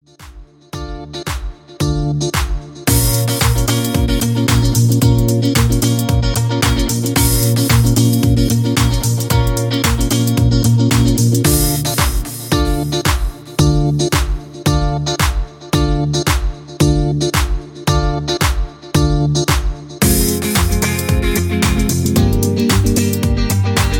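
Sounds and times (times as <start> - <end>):
music: 0.0 - 23.9.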